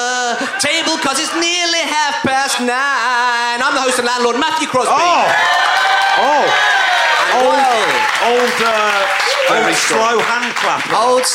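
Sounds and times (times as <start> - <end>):
laughter: 0.1 - 5.3, 6.1 - 10.5
speech: 0.6 - 11.3
audience slow handclap: 7.2 - 11.3.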